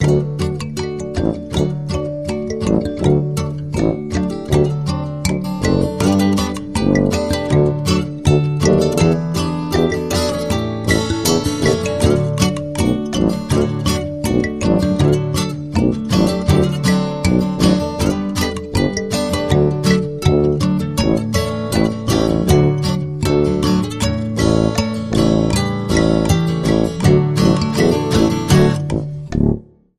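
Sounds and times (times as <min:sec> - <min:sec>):
upbeat christmas music: 0:00.0 - 0:29.6.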